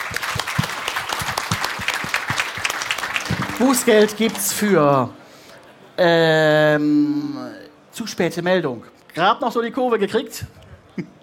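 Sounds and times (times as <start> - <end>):
audience applause: 0.0 - 5.1
speech: 3.6 - 5.2, 6.0 - 11.2.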